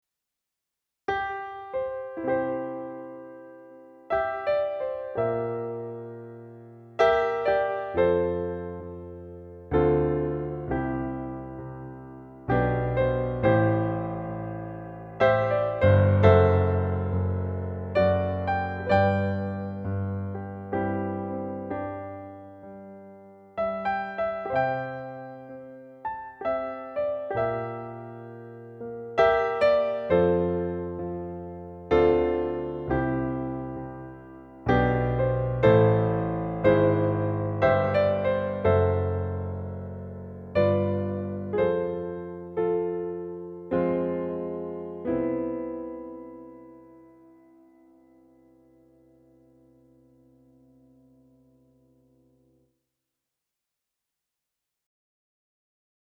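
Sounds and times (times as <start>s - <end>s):
grand piano: 1.1s - 52.7s.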